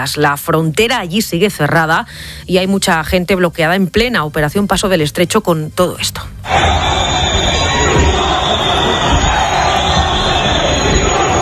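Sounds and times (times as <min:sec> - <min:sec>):
speech: 0:00.0 - 0:06.9
crowd booing a politician's arrival: 0:06.5 - 0:11.4.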